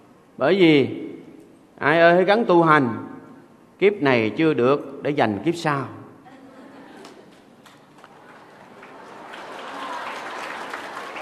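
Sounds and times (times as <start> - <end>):
speech: 0.4 - 1.0, 1.8 - 3.0, 3.8 - 6.0
audience applause at a dharma talk at a Buddhist pagoda: 7.0 - 11.2.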